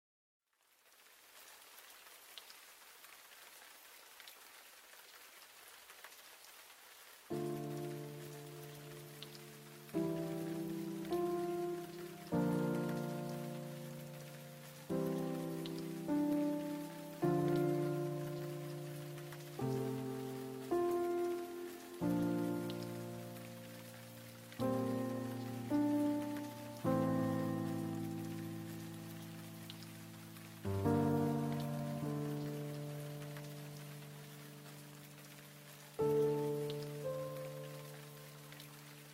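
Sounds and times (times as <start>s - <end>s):
piano suite: 7.3s - 39.1s.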